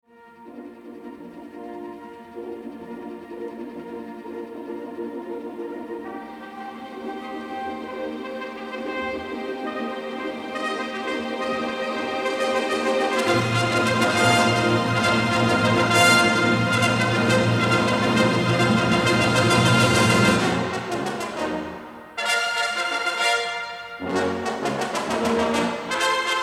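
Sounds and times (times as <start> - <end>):
orchestra playing a symphony scherzo: 6.3 - 26.4.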